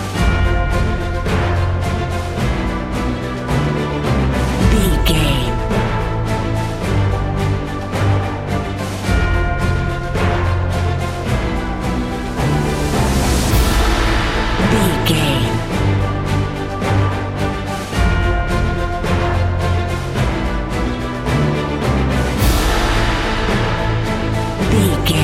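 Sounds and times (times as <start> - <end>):
epic cinematic march music bed: 0.0 - 25.2.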